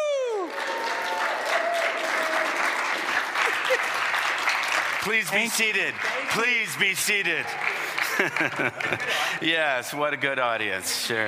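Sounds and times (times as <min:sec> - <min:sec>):
falling whoop or whistle: 0:00.0 - 0:02.6
people cheering: 0:00.0 - 0:09.4
audience standing ovation applause: 0:00.0 - 0:09.5
laughter: 0:03.2 - 0:04.2, 0:07.5 - 0:09.5
speech: 0:05.0 - 0:11.2.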